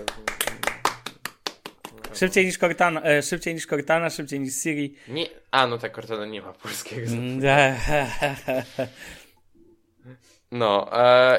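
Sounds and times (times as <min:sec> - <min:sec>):
audience clapping: 0:00.0 - 0:02.6
speech: 0:02.1 - 0:09.2, 0:10.0 - 0:11.3
laughter: 0:07.1 - 0:09.2.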